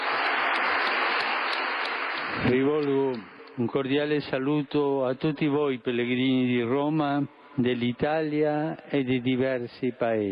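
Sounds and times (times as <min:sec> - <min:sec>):
large crowd of pilgrims applauding at a Sunday gathering in Rome: 0:00.0 - 0:04.1
speech: 0:02.4 - 0:10.2.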